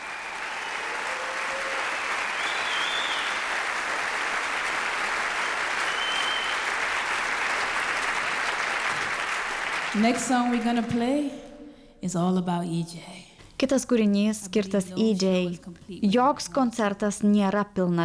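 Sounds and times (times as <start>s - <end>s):
concert audience applause for a band member: 0.0s - 10.9s
speech: 10.0s - 11.4s, 12.0s - 18.0s.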